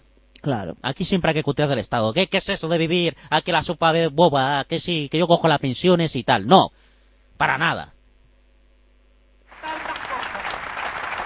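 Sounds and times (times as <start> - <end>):
speech: 0.4 - 8.0
crowd applauding: 9.5 - 11.2.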